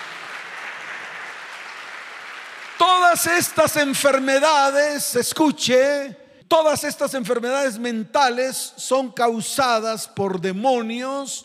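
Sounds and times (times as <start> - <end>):
audience applauding: 0.0 - 4.8
speech: 3.1 - 11.4.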